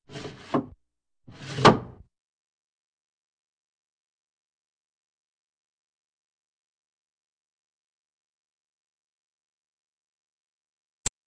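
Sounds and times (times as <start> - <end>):
doors: 0.0 - 2.0.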